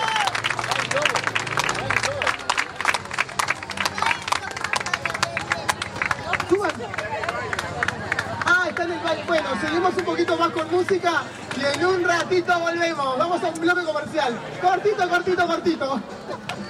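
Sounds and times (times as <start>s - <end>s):
audience applauding: 0.0s - 10.7s
voices and cheers: 0.0s - 12.8s
speech: 9.3s - 16.1s.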